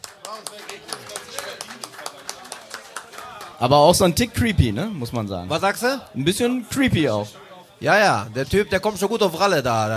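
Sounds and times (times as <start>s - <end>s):
audience applause: 0.0s - 3.7s
speech: 3.6s - 9.9s.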